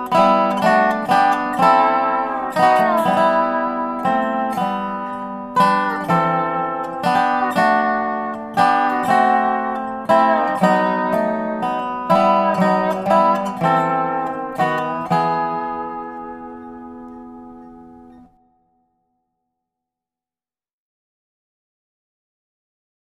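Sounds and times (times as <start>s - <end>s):
dobro playing Christmas music: 0.0s - 18.4s.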